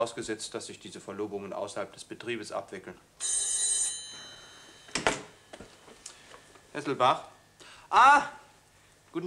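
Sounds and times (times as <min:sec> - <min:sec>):
speech: 0:00.0 - 0:03.6, 0:06.8 - 0:07.3, 0:07.9 - 0:08.4
telephone bell ringing: 0:03.2 - 0:05.5.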